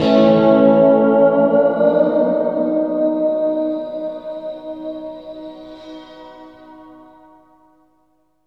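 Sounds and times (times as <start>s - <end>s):
wet guitar: 0.0s - 6.6s.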